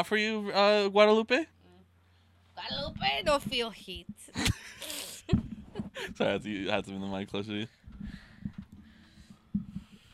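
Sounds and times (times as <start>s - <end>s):
speech: 0.0s - 1.6s, 2.6s - 5.4s, 6.0s - 8.2s
heavy breathing with snorty puffs: 7.8s - 10.1s.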